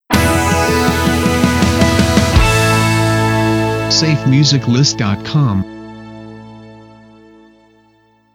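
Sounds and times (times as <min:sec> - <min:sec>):
musical stinger: 0:00.1 - 0:04.4.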